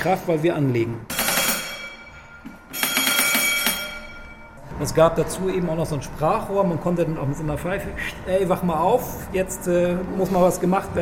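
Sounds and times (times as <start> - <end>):
speech: 0.0 - 1.1, 4.8 - 11.0
ship's engine order telegraph bell ringing: 1.1 - 4.7.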